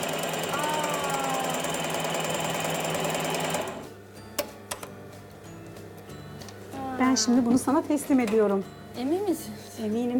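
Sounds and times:
sewing machine stitching: 0:00.0 - 0:03.8
speech: 0:07.0 - 0:10.1.

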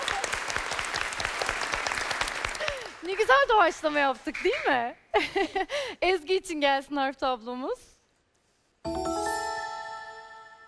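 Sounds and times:
studio audience applause on a Turkish quiz show: 0:00.0 - 0:03.7
speech: 0:03.3 - 0:07.9.

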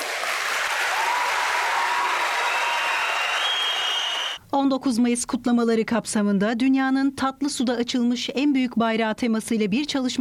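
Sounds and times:
crowd applauding commandos at a 19 May celebration in a hall in Bolu: 0:00.0 - 0:04.4
speech: 0:04.6 - 0:10.1.

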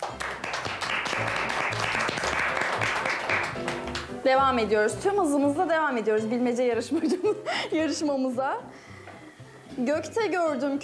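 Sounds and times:
applause: 0:00.0 - 0:04.1
speech: 0:04.3 - 0:08.8, 0:09.8 - 0:10.8.

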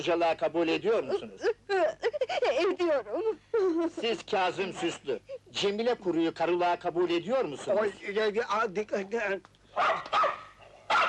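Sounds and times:
speech: 0:00.0 - 0:02.0, 0:02.6 - 0:10.2
dog barking during a civil wedding ceremony: 0:09.8 - 0:11.0.

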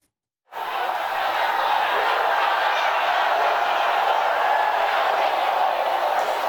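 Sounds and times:
crowd booing and shouting at a Donald Trump rally in San Antonio, Texas: 0:00.5 - 0:06.4
laughter: 0:00.6 - 0:06.4.

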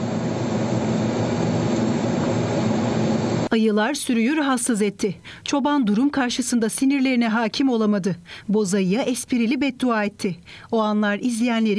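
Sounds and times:
drone flying: 0:00.0 - 0:03.5
speech: 0:03.5 - 0:11.7.

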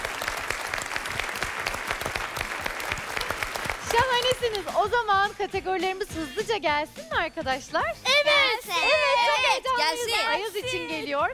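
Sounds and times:
audience applause for a friend: 0:00.0 - 0:04.8
speech: 0:03.9 - 0:11.3.

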